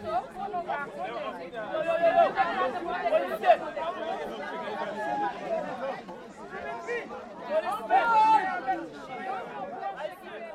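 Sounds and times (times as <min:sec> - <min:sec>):
school classes of children chattering: 0:00.0 - 0:10.5.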